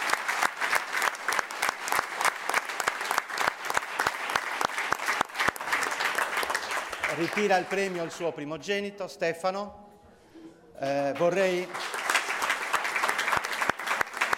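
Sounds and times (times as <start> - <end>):
audience applause: 0.0 - 8.2, 11.2 - 14.3
speech: 7.2 - 9.8, 10.8 - 11.9.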